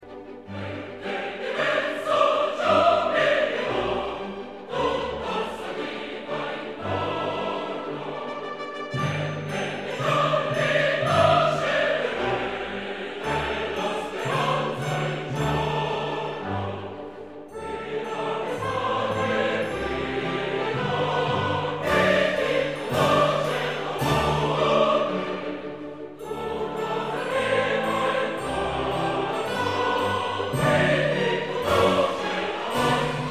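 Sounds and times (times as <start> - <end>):
choir singing: 0.0 - 33.3.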